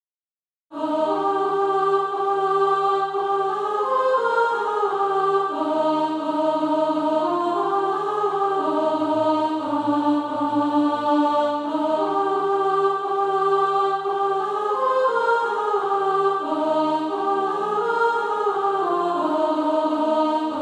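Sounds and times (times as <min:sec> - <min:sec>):
alto voice singing practice music: 0:00.7 - 0:20.6.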